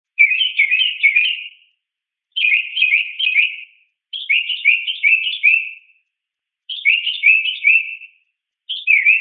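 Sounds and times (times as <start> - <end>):
mockingbird chattering slurred calls: 0.2 - 1.6, 2.4 - 5.8, 6.7 - 8.1, 8.7 - 9.2.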